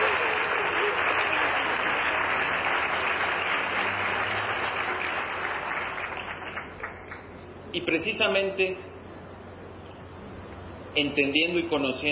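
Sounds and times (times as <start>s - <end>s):
audience applause: 0.0s - 7.3s
speech: 7.8s - 8.9s, 11.0s - 12.1s.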